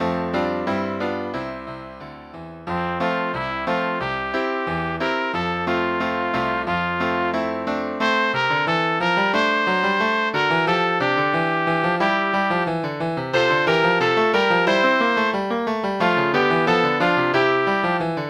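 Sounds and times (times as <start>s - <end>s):
piano: 0.0s - 18.2s
trumpet: 2.7s - 18.2s.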